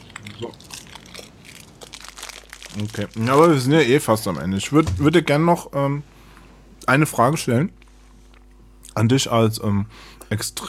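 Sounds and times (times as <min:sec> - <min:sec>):
person eating a spiced almond: 0:00.0 - 0:04.2
plastic bag crinkling: 0:00.0 - 0:05.3
speech: 0:00.4 - 0:00.7, 0:02.8 - 0:06.1, 0:06.9 - 0:07.8, 0:09.0 - 0:10.6.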